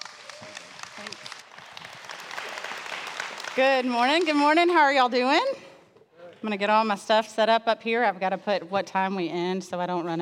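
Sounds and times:
faint applause from a church congregation welcoming a pastor: 0.0s - 4.3s
speech: 3.6s - 5.6s, 6.4s - 10.2s.

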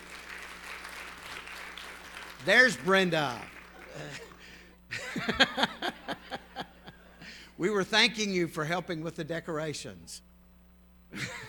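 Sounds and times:
audience applause: 0.0s - 4.7s
speech: 2.4s - 4.3s, 5.2s - 6.0s, 7.6s - 10.3s
laughter: 3.6s - 7.3s, 11.2s - 11.4s.

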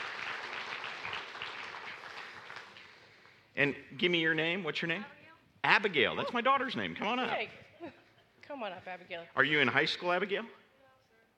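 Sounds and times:
crowd applauding: 0.0s - 3.4s
speech: 3.6s - 10.6s.

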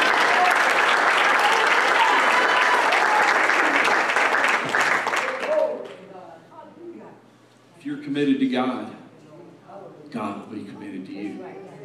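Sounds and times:
audience clapping hands: 0.0s - 6.1s
speech: 8.2s - 9.0s, 10.1s - 11.7s.

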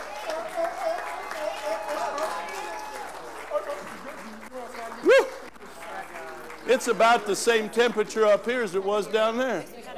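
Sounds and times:
audience applauding: 0.0s - 8.8s
speech: 6.8s - 9.8s.

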